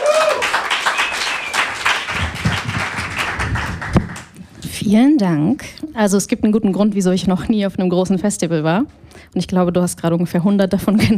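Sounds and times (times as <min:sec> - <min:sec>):
audience applause: 0:00.0 - 0:04.3
speech: 0:04.9 - 0:11.1.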